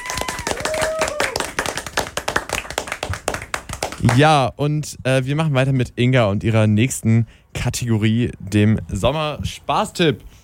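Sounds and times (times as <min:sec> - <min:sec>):
audience applause: 0:00.0 - 0:04.2
speech: 0:04.0 - 0:10.4.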